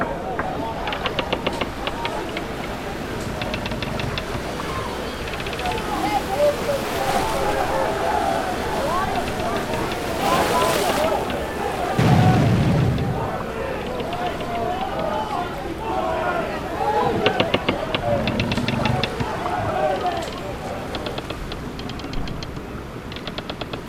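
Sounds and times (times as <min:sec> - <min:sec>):
sea in a pirate ambience: 0:00.0 - 0:23.8
gunshots in a pirate ambience: 0:12.0 - 0:13.2.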